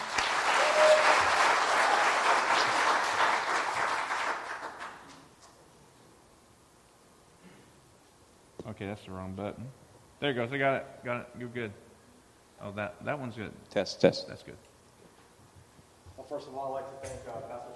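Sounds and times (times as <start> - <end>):
crowd applause: 0.0 - 5.2
speech: 8.8 - 11.8, 12.6 - 14.7, 16.3 - 17.7.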